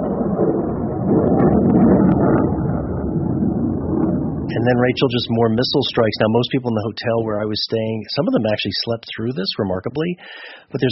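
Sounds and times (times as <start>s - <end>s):
jets roaring overhead: 0.0s - 7.5s
speech: 4.6s - 10.8s.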